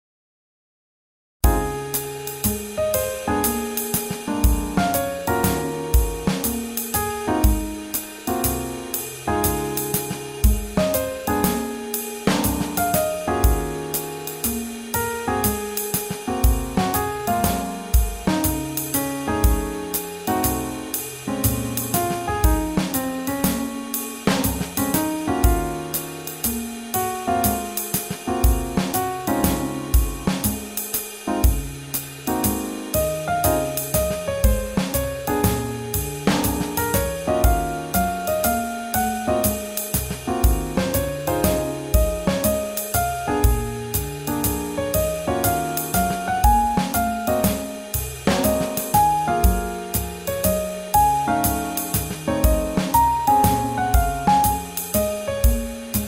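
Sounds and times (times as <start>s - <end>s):
swing jazz: 1.4s - 56.0s.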